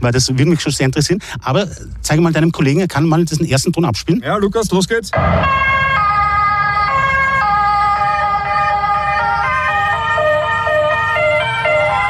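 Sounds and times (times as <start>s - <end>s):
speech: 0.0s - 5.8s
ambulance siren: 5.1s - 12.0s.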